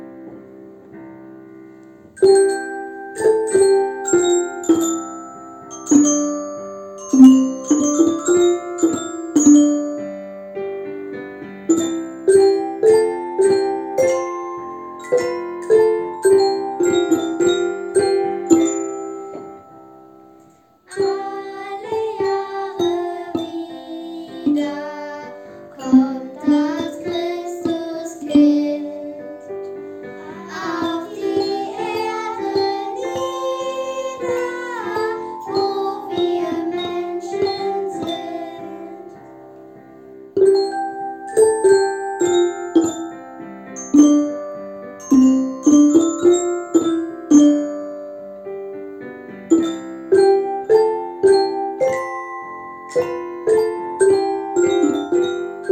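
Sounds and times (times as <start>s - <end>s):
instrumental ensemble: 1.7s - 55.7s
school choir singing: 20.9s - 29.3s, 30.2s - 39.2s.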